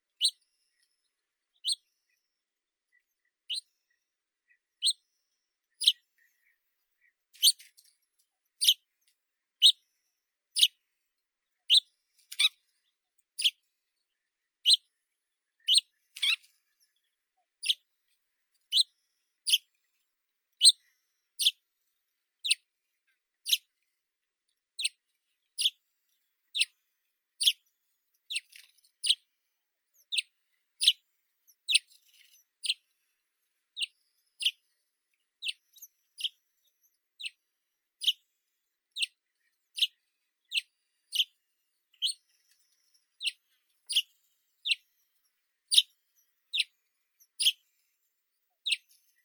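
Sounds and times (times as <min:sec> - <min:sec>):
saxaul sparrow Passer ammodendri calling: 0:01.6 - 0:01.9, 0:04.8 - 0:05.0, 0:05.8 - 0:06.6, 0:07.4 - 0:07.7, 0:08.6 - 0:08.8, 0:10.6 - 0:10.8, 0:11.7 - 0:12.6, 0:13.4 - 0:13.6, 0:15.6 - 0:16.5, 0:17.6 - 0:17.8, 0:18.7 - 0:19.8, 0:20.6 - 0:21.6, 0:23.4 - 0:23.7, 0:24.8 - 0:25.0, 0:25.6 - 0:25.8, 0:26.5 - 0:26.8, 0:27.4 - 0:27.6, 0:28.3 - 0:29.3, 0:29.9 - 0:32.8, 0:33.8 - 0:34.6, 0:35.4 - 0:37.4, 0:38.0 - 0:38.2, 0:39.8 - 0:41.3, 0:41.9 - 0:44.9, 0:45.7 - 0:47.6, 0:48.6 - 0:49.2.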